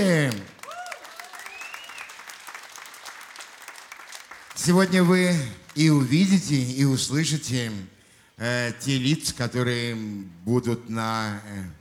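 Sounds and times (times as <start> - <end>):
speech: 0.0 - 0.5, 4.6 - 11.7
audience applause: 0.0 - 5.2.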